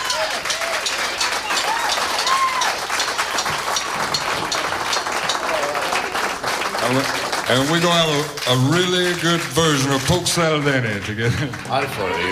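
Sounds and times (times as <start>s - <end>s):
faint voices and whoops: 0.0s - 2.9s
audience applause: 0.0s - 12.2s
speech: 6.9s - 12.2s.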